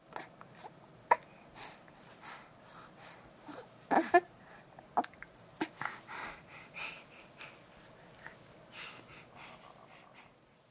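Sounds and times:
6 month old baby breathing and struggling: 1.3 - 4.7, 5.6 - 10.4.

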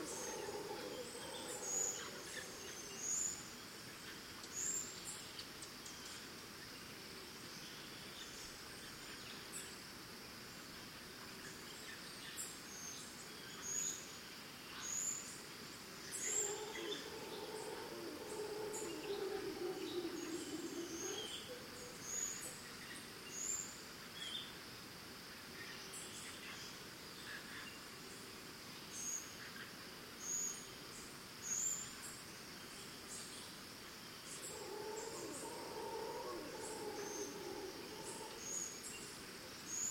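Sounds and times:
distant monkeys in Costa Rica: 0.0 - 4.8, 15.8 - 23.6, 34.3 - 39.8
birds in Costa Rica: 0.0 - 6.2, 16.0 - 23.6, 34.4 - 39.8
crickets in Costa Rica: 0.0 - 39.8.

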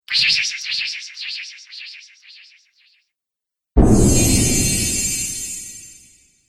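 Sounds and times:
magic spells: 3.8 - 6.1.

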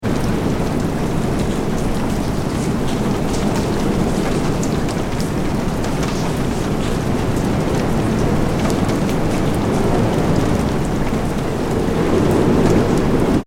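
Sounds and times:
light rain: 0.0 - 13.4
strong wind: 0.0 - 13.4.

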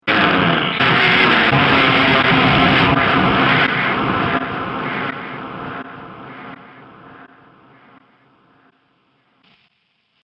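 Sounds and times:
brutal mangled crash impact: 0.8 - 7.3.

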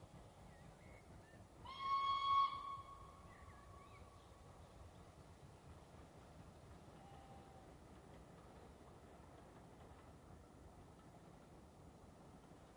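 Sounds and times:
steam train passing at high speed: 0.0 - 12.7
steam train whistle: 1.6 - 3.3, 7.0 - 7.7.

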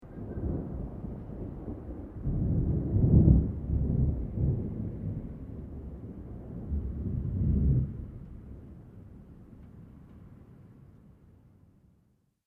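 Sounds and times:
distant low long thunder: 0.0 - 9.6.

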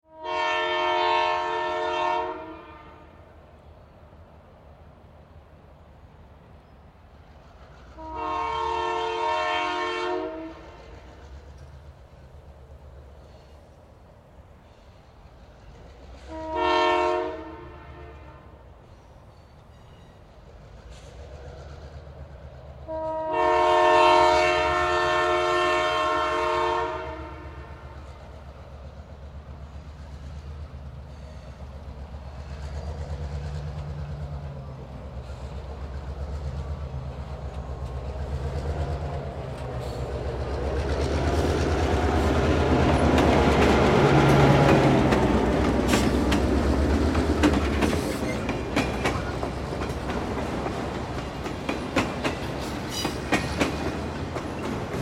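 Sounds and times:
train horns: 0.0 - 3.4, 7.9 - 11.4, 16.2 - 18.8, 22.8 - 28.4, 37.3 - 55.0
train approaching and passing by: 0.0 - 55.0.

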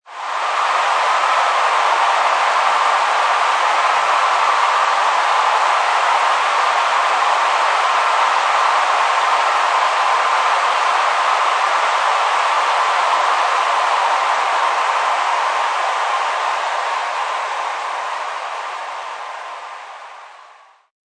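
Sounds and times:
sports stadium crowd cheering a touchdown or goal: 0.0 - 20.9.

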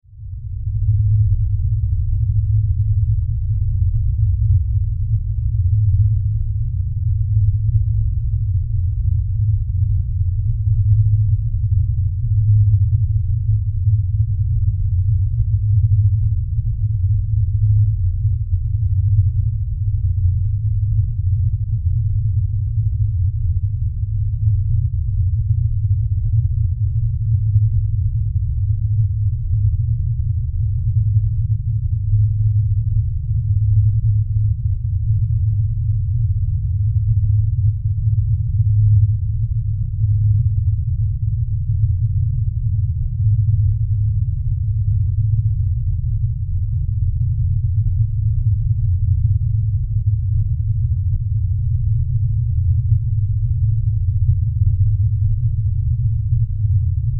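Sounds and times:
horror demonic low drone rumble: 0.0 - 57.1.

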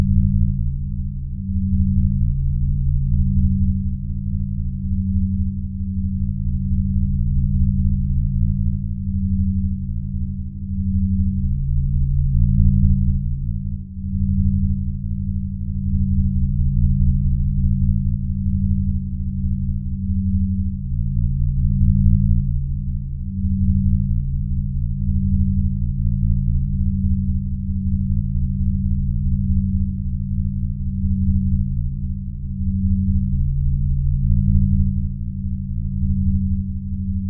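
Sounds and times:
science fiction magnetic field drone: 0.0 - 37.2.

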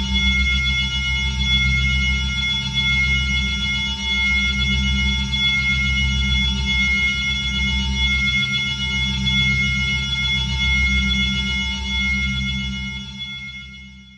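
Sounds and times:
high-pitched sci-fi ringing drone: 0.0 - 14.1.

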